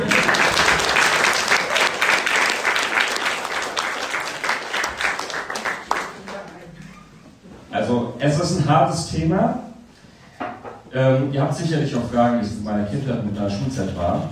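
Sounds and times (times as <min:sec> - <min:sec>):
audience applause: 0:00.0 - 0:06.6
speech: 0:08.7 - 0:09.7, 0:10.9 - 0:14.3.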